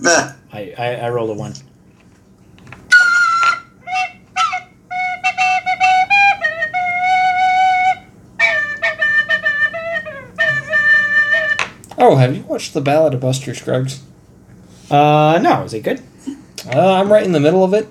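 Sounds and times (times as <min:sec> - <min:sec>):
speech: 0:00.0 - 0:01.7, 0:12.1 - 0:14.1, 0:14.9 - 0:16.1, 0:16.7 - 0:17.8
outro theme on tin whistle: 0:02.9 - 0:11.8.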